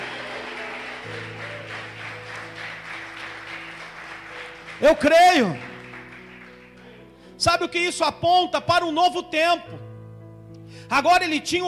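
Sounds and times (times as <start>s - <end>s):
audience applause: 0.0s - 7.0s
sustained low keyboard chords: 0.0s - 11.6s
speech: 1.1s - 1.6s, 4.8s - 5.7s, 7.4s - 9.9s, 10.9s - 11.6s.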